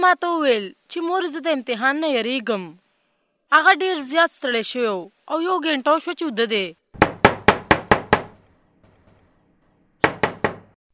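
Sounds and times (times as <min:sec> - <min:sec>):
speech: 0:00.0 - 0:02.8, 0:03.5 - 0:06.8
knocking on a house door: 0:07.0 - 0:08.4, 0:10.0 - 0:10.8.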